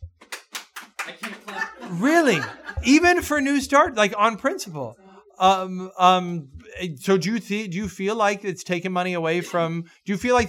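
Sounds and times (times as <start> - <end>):
audience applause: 0.2 - 1.6
laughter: 1.0 - 3.2
speech: 1.1 - 10.4.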